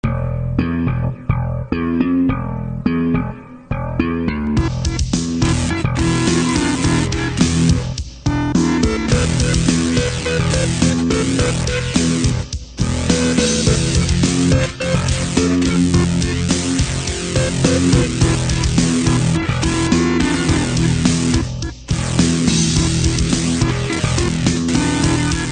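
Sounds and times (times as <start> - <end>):
technofunk music: 0.0 - 25.4.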